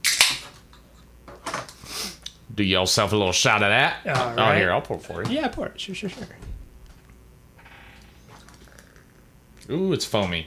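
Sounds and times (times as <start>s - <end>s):
beer being opened with metallic click and hiss: 0.0s - 0.6s
speech: 2.6s - 6.5s, 9.7s - 10.4s.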